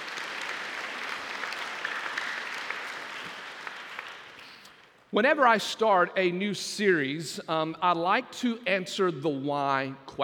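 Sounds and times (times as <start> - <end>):
audience hand clap of praise: 0.0 - 5.0
speech: 5.1 - 10.2.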